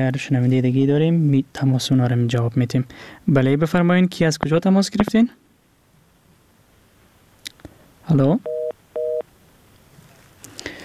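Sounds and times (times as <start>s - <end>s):
speech: 0.0s - 5.4s, 8.1s - 8.6s
faint hiss: 0.0s - 10.8s
telephone busy tone after a radio call-in drops: 8.4s - 9.3s.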